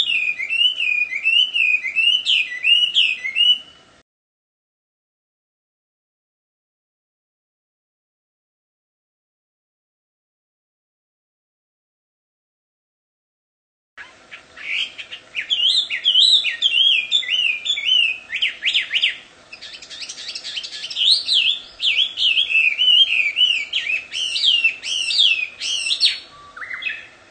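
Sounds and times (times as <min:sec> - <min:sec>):
wild Chinese hwamei singing in its natural habitat: 0:00.0 - 0:03.9, 0:14.0 - 0:27.2.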